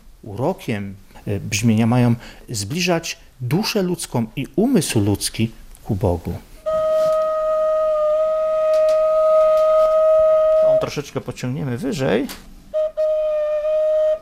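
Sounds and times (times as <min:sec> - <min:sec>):
speech: 0:00.2 - 0:06.5, 0:10.8 - 0:12.5
single organ pipe holding a steady tone: 0:06.6 - 0:11.0, 0:12.7 - 0:14.2.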